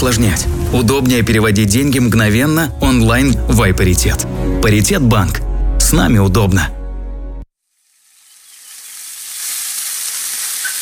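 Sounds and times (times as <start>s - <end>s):
speech: 0.0s - 6.8s
meat sizzling on a barbecue grill: 7.7s - 10.8s.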